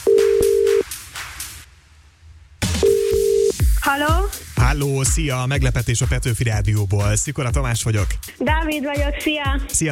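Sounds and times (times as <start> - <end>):
telephone line ringing tone dialing a radio contest caller: 0.0 - 0.8, 2.8 - 3.6
speech: 3.9 - 9.9.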